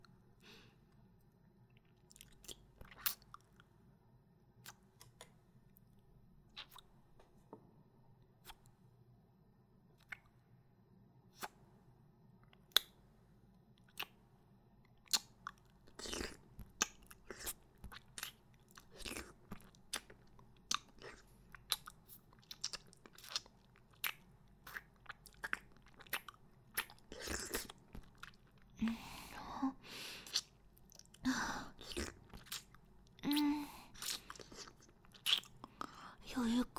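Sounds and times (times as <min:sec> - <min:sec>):
person chewing and biting into crisp food: 0:01.7 - 0:03.7, 0:04.6 - 0:07.0, 0:13.8 - 0:14.2, 0:14.9 - 0:36.2.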